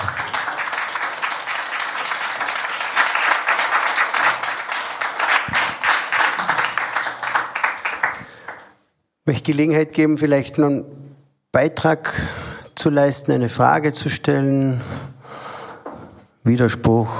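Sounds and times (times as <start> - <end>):
audience applause: 0.0 - 8.7
speech: 9.3 - 11.0, 11.6 - 15.1, 16.4 - 17.1.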